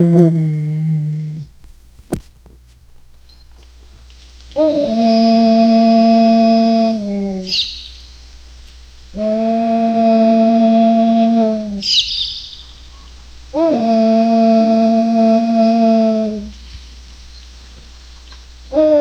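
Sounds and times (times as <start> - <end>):
great honking moan: 0.0 - 1.5, 4.5 - 7.6, 9.1 - 16.6, 18.6 - 18.9.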